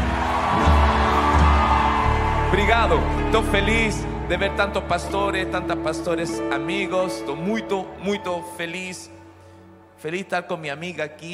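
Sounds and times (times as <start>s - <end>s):
crowd shouting and cheering: 0.0s - 8.6s
speech: 2.5s - 9.2s, 10.0s - 11.3s.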